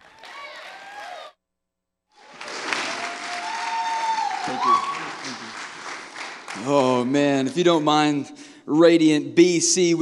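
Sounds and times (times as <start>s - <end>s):
church congregation applauding: 0.0s - 1.4s, 2.2s - 7.7s
speech: 6.6s - 10.0s.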